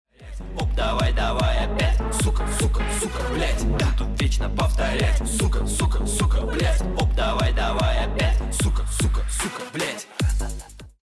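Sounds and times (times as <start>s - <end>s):
ten second bomb timer countdown: 0.2s - 9.4s.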